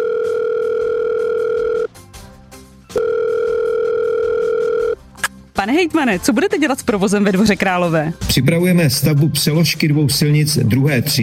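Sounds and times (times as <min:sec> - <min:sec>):
telephone dialing: 0:00.0 - 0:01.9, 0:03.0 - 0:05.0
speech: 0:05.6 - 0:11.2.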